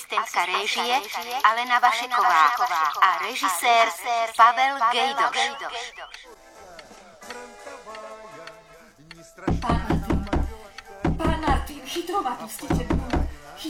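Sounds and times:
speech: 0.1 - 6.4, 11.8 - 13.6
knocking on a door: 9.5 - 11.8, 12.7 - 13.5.

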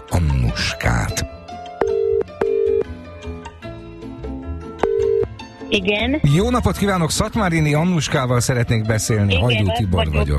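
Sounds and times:
faint music: 0.0 - 10.3
steady electronic telephone ringback tone: 1.8 - 2.9, 4.8 - 5.3
speech: 5.8 - 10.3.

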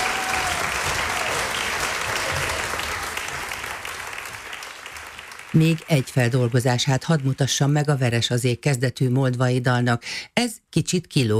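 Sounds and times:
audience applause: 0.0 - 7.5
speech: 5.5 - 11.3.

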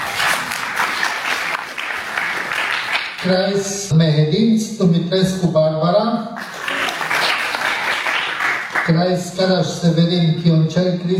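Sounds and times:
audience applause: 0.0 - 3.3, 6.4 - 9.0
speech: 3.2 - 6.4, 8.9 - 11.1.

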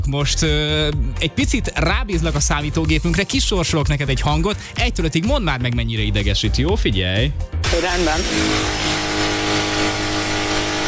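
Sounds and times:
speech: 0.1 - 9.0
power drill: 7.6 - 10.8.

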